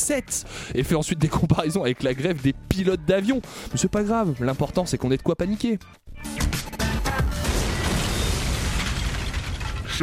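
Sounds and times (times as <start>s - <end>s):
speech: 0.1s - 6.8s
explosion sound effect: 7.3s - 10.0s.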